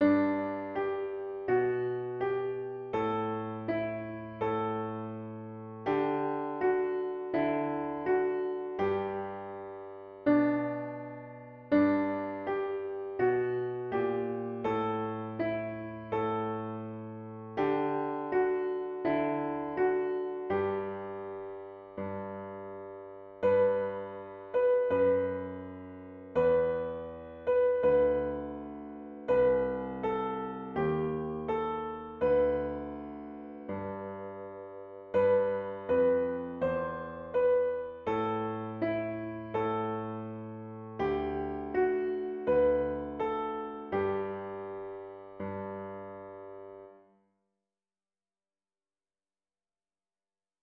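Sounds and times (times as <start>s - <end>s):
piano: 0.0s - 47.2s.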